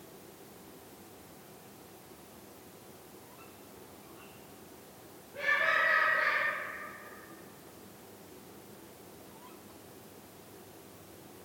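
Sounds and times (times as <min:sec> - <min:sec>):
Eurasian eagle-owl call: 0:05.4 - 0:07.4.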